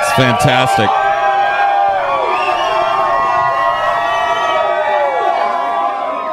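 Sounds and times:
wedding crowd cheering: 0.0s - 6.3s
speech: 0.2s - 1.0s.

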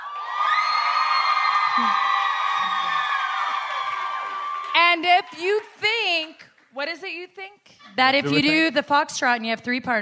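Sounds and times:
live audience cheering: 0.0s - 6.3s
speech: 1.8s - 2.0s, 5.0s - 9.9s.

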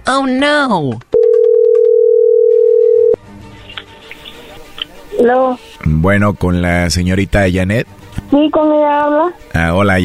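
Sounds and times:
speech: 0.1s - 1.1s, 5.2s - 10.0s
telephone dial tone: 1.2s - 3.2s.

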